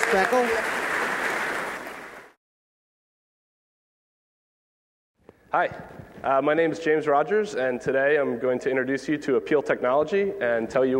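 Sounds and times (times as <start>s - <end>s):
crowd applauding: 0.0s - 2.4s
speech: 0.1s - 0.9s, 5.5s - 10.9s.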